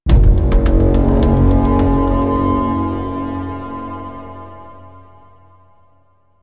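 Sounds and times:
UI stinger sound: 0.1 - 5.0.

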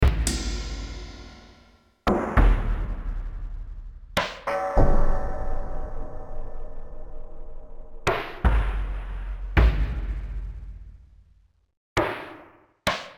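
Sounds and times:
drums: 0.0 - 5.8, 8.1 - 11.3, 12.0 - 13.1.

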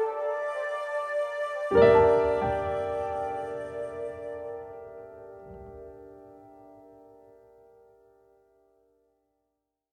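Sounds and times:
village night theme music: 0.0 - 7.4.

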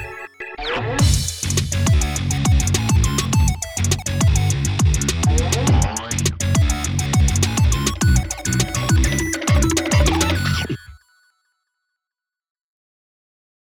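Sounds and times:
instrumental music: 0.0 - 10.9.

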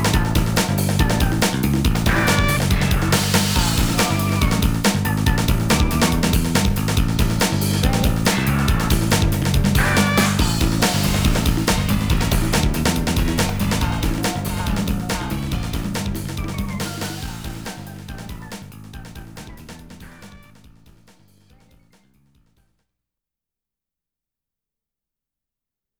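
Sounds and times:
race background music: 0.0 - 20.6.

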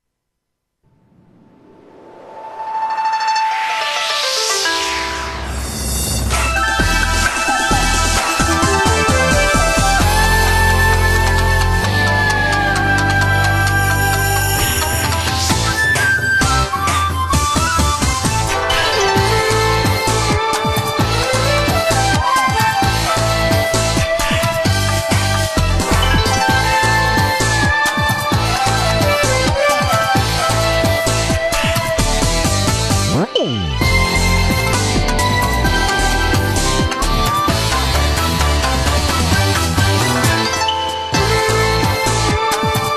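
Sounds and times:
Japanese rock title background music: 3.0 - 42.9.

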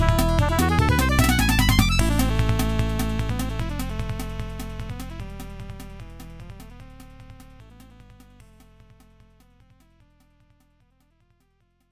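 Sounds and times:
inorganic electronic beat: 0.0 - 8.6.

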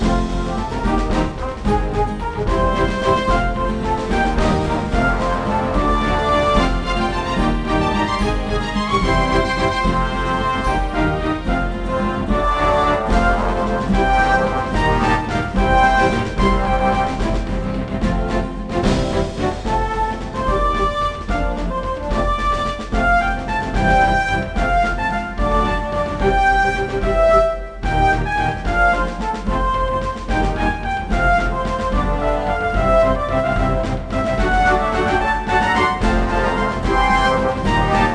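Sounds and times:
duel music: 0.0 - 38.1.

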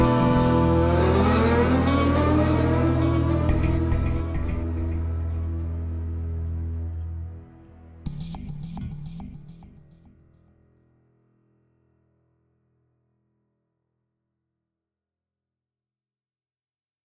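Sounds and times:
rhythmic tension music without guitars: 0.0 - 7.2, 7.8 - 10.3.

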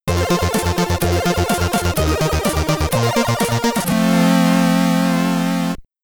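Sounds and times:
stage clear chiptune jingle in SID stereo: 0.1 - 5.8.

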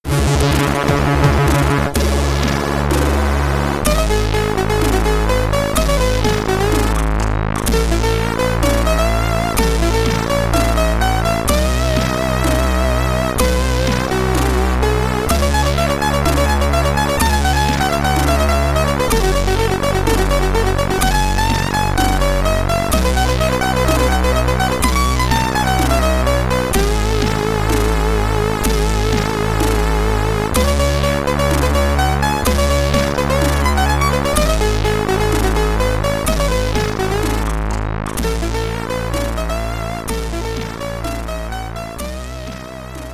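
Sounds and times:
Commodore 64 SID chiptune music in stereo: 0.0 - 43.1.

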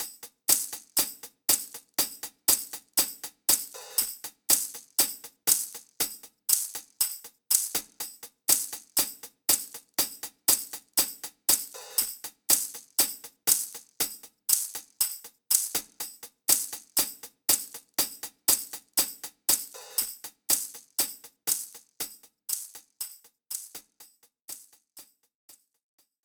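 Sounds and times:
drum loop: 0.0 - 24.7.

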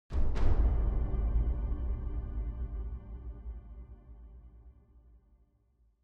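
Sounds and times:
big drums: 0.1 - 3.8.

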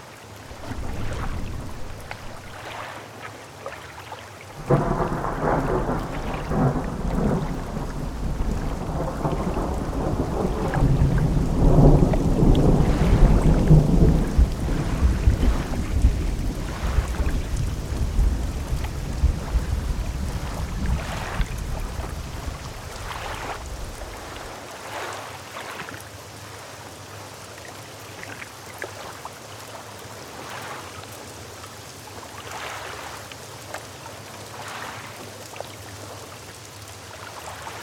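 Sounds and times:
gale wind on cliffs at night: 0.5 - 2.7, 4.6 - 24.4.

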